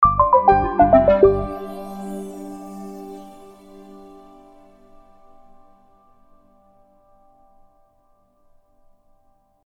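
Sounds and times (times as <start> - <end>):
sound logo: 0.0 - 5.0.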